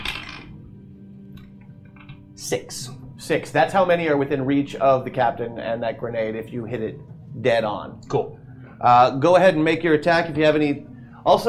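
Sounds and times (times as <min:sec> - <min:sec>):
small ten-sided die rattling across a hard surface: 0:00.0 - 0:00.5
low steady hum: 0:00.0 - 0:11.4
speech: 0:02.4 - 0:11.4.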